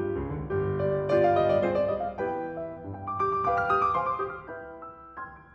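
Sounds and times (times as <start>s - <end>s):
polka music: 0.0s - 4.4s.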